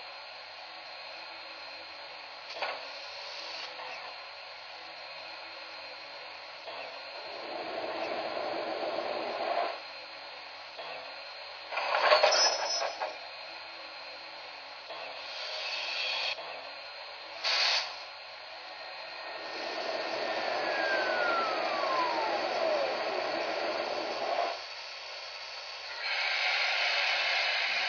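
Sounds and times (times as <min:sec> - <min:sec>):
cab forward train: 0:02.1 - 0:04.2, 0:06.6 - 0:10.0, 0:10.8 - 0:13.6, 0:14.8 - 0:27.8.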